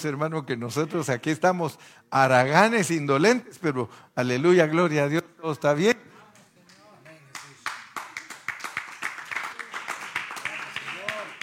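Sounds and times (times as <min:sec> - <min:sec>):
speech: 0:00.0 - 0:06.1
people clapping: 0:06.6 - 0:11.4.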